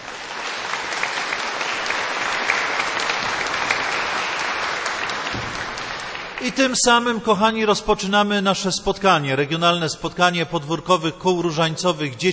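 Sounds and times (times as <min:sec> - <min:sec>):
applause: 0:00.0 - 0:07.1
speech: 0:06.4 - 0:12.3.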